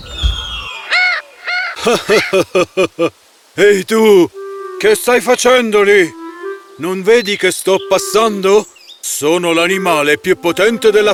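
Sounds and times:
parrot squawking: 0.0s - 2.3s
laughter: 1.8s - 3.1s
speech: 1.8s - 6.2s, 6.8s - 11.1s.

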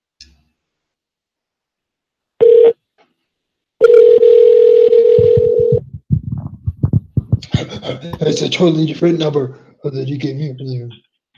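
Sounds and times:
telephone dial tone: 2.4s - 2.8s, 3.8s - 5.8s
speech: 7.8s - 11.1s.

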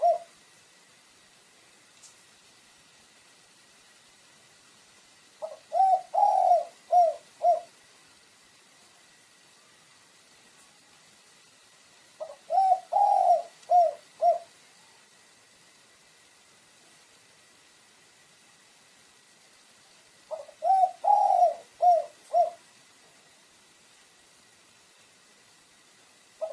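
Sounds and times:
pigeon giving low hollow coos: 0.0s - 0.4s, 5.4s - 7.7s, 12.2s - 14.6s, 20.3s - 22.7s, 26.4s - 26.5s.

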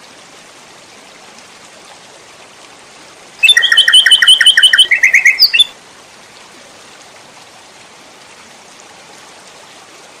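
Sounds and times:
White-rumped shama song: 3.4s - 5.7s.

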